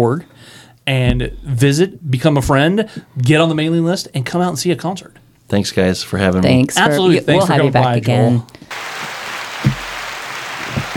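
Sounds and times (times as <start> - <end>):
speech: 0.0 - 9.1
applause sound effect from a button: 8.7 - 10.9.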